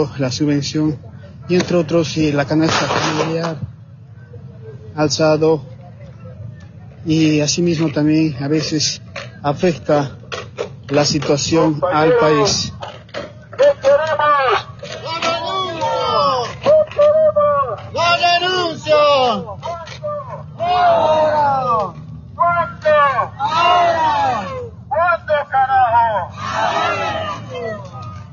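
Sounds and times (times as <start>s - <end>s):
speech: 0.0s - 3.7s, 5.0s - 5.7s, 7.0s - 10.2s, 10.9s - 12.8s
crowd of protesters shouting: 13.6s - 28.3s.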